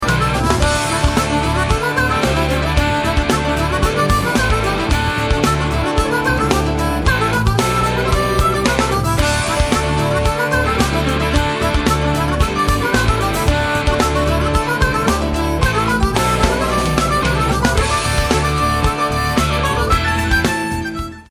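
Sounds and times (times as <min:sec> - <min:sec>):
melody: 0:00.0 - 0:21.2.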